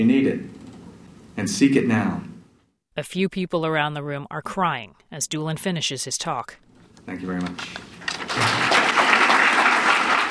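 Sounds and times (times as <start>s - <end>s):
speech: 0.0s - 0.6s, 1.4s - 2.3s, 3.0s - 8.7s
audience standing ovation applause after a talk about trauma: 8.1s - 10.2s.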